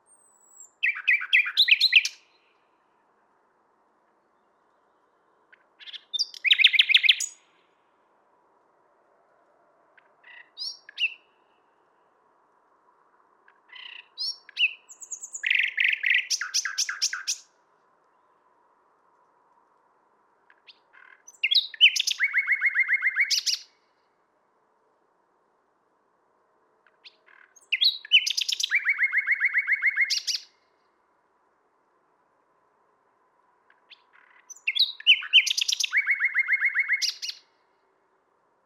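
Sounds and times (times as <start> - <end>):
common nightingale song phrases: 0.0 - 3.1, 4.3 - 7.8, 10.0 - 12.0, 13.4 - 18.4, 20.5 - 23.8, 26.8 - 30.7, 33.7 - 37.7.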